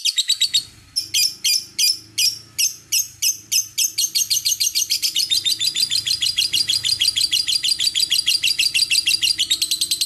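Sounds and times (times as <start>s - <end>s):
lovebird calling in response: 0.0s - 10.0s.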